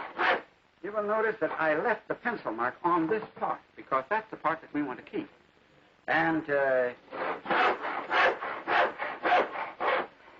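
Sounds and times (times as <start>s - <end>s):
hand saw cutting wood: 0.0s - 0.4s, 7.1s - 10.1s
speech: 0.9s - 5.4s, 6.1s - 7.7s.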